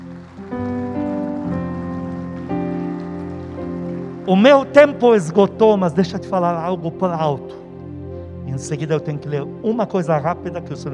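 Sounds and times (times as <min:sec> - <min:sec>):
crowd applause: 0:00.0 - 0:05.6
sustained keyboard chords: 0:00.0 - 0:10.9
speech: 0:04.3 - 0:07.6, 0:08.6 - 0:10.9.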